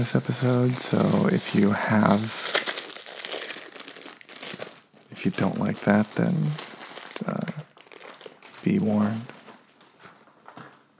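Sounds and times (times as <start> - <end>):
speech: 0.0 - 2.6, 5.2 - 7.6, 8.6 - 9.4
plastic package wrapper crinkling as it is opened: 0.0 - 10.6.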